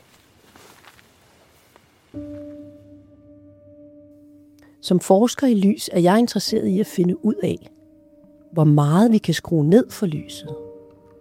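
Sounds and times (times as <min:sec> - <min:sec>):
dog moving through undergrowth: 0:00.0 - 0:02.7
speech: 0:04.8 - 0:07.8, 0:08.5 - 0:10.6.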